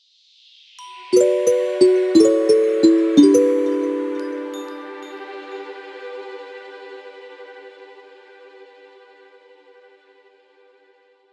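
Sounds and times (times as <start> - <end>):
game over jingle: 1.2 - 5.7.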